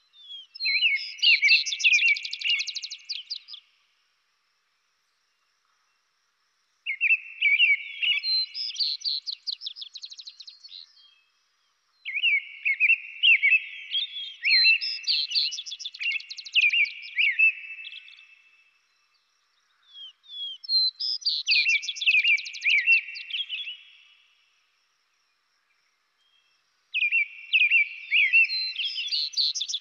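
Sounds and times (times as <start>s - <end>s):
robin singing: 0.0s - 3.7s, 6.9s - 11.3s, 12.0s - 18.4s, 19.7s - 24.2s, 26.2s - 29.7s.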